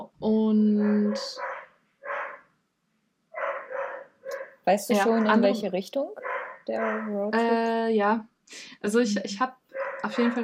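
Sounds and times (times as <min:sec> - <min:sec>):
speech: 0:00.1 - 0:01.5, 0:04.7 - 0:10.4
dog barking in the background: 0:00.8 - 0:02.5, 0:03.3 - 0:04.6, 0:06.2 - 0:07.2, 0:09.7 - 0:10.4.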